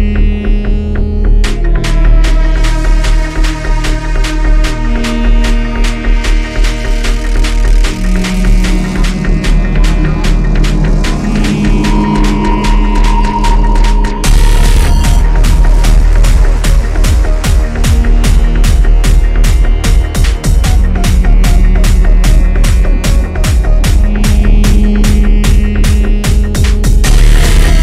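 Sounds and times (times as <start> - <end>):
rumbling bass synth: 0.0 - 27.8.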